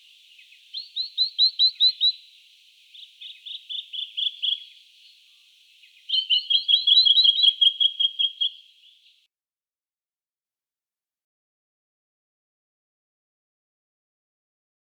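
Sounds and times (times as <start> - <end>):
Jacky winter singing high quick chirps: 0.0 - 5.2, 5.8 - 9.2.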